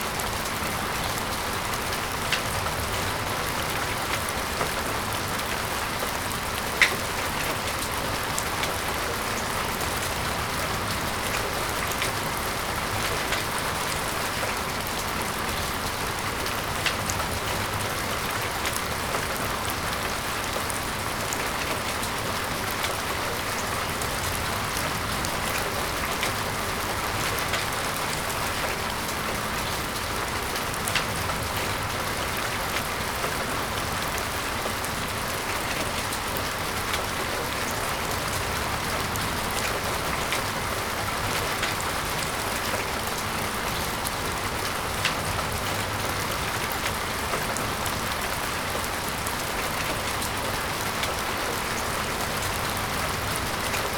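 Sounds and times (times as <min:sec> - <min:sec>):
drops of rain: 0:00.0 - 0:53.9.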